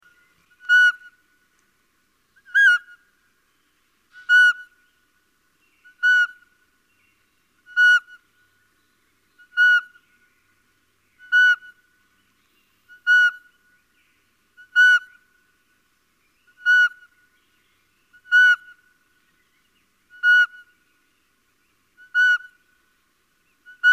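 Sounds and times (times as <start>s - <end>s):
Little owl repeating a short mewing whistle: 0.6s - 1.1s, 4.2s - 4.7s, 5.9s - 6.4s, 7.7s - 8.2s, 9.4s - 10.0s, 11.2s - 11.8s, 12.9s - 13.5s, 14.6s - 15.2s, 16.6s - 17.1s, 18.2s - 18.8s, 20.1s - 20.7s, 22.0s - 22.6s, 23.7s - 23.9s.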